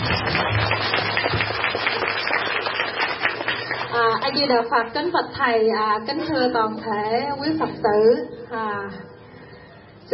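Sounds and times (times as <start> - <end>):
Buddhist laypeople clapping at the Trúc Lâm monastery in Canada: 0.0 - 4.5
speech: 4.3 - 9.1.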